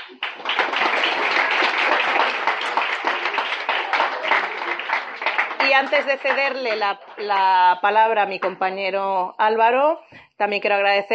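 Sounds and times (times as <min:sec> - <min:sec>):
audience applause: 0:00.0 - 0:07.8
speech: 0:05.7 - 0:11.1.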